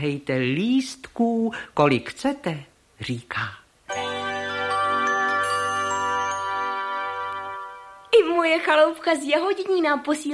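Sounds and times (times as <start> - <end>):
speech: 0.0 - 4.1, 8.4 - 10.3
small blue bell tinkling: 3.9 - 8.2.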